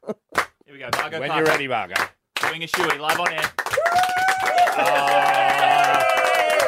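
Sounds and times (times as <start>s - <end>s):
crowd clapping: 0.3s - 6.6s
speech: 0.8s - 6.6s
voices cheering: 3.7s - 6.6s.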